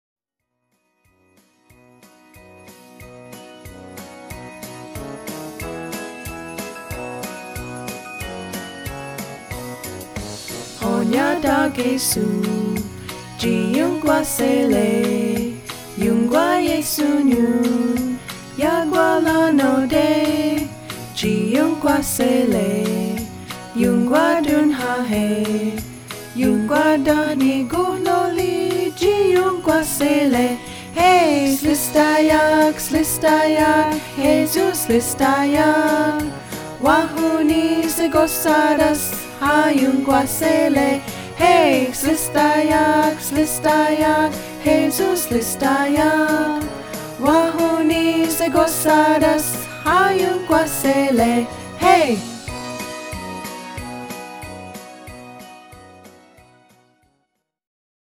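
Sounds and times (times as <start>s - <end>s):
Christmas song: 0.8s - 57.1s.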